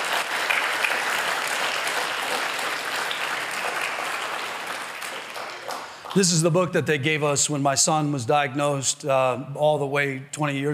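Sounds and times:
crowd applauding: 0.0s - 6.6s
speech: 6.1s - 10.7s.

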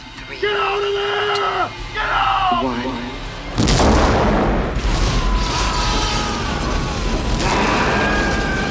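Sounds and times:
speech: 0.3s - 3.1s
heavy sustained roar and rumble of debris: 3.2s - 8.6s
loud explosion blowing up a room: 3.5s - 8.6s.

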